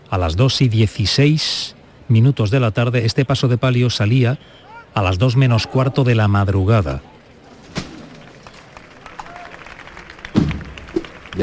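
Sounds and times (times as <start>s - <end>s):
speech: 0.1s - 7.1s
crowd applause after the float is knocked: 7.9s - 11.4s.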